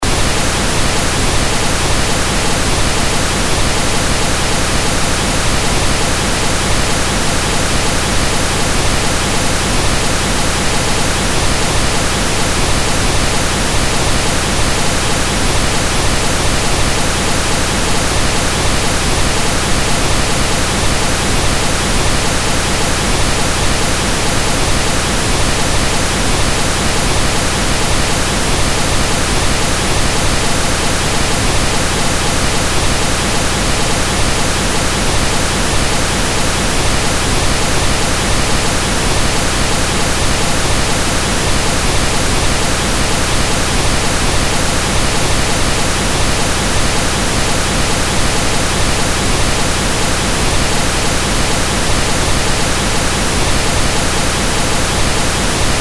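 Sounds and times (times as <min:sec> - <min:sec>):
pink noise: 0:00.0 - 0:55.7.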